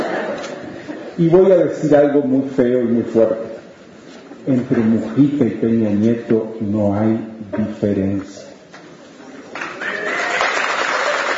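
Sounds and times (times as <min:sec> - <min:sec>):
laughter: 0:00.0 - 0:01.2
speech: 0:01.2 - 0:03.5, 0:04.4 - 0:08.5
audience applause: 0:09.5 - 0:11.3.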